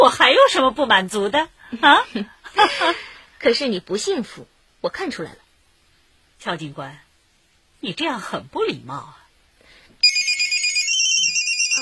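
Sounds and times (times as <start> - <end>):
speech: 0.0 - 5.4, 6.4 - 7.0, 7.8 - 9.2
mobile phone ringtone electronic melody: 10.0 - 11.8.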